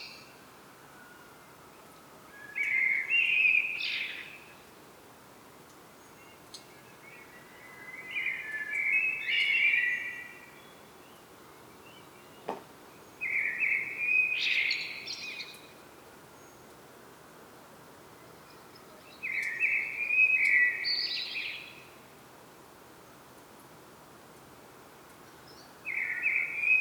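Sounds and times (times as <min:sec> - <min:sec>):
common blackbird singing fluty phrases: 0:00.0 - 0:04.7, 0:06.0 - 0:15.8, 0:18.1 - 0:22.0, 0:25.2 - 0:26.7.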